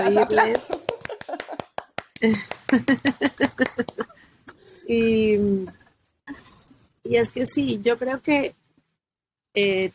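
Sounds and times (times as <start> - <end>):
speech: 0.0 - 0.8, 2.2 - 4.2, 4.8 - 6.5, 7.1 - 8.6, 9.5 - 9.9
laughter: 0.0 - 4.2
hand claps: 0.3 - 4.2.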